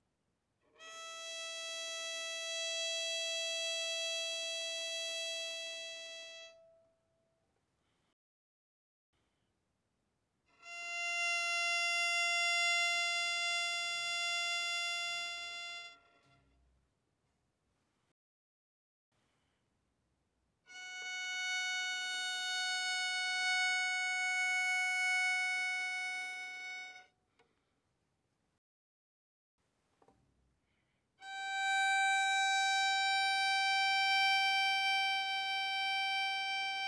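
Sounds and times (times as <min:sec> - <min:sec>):
bowed violin on the E string: 0:00.8 - 0:06.7, 0:10.6 - 0:16.2, 0:20.7 - 0:27.1, 0:31.2 - 0:36.8.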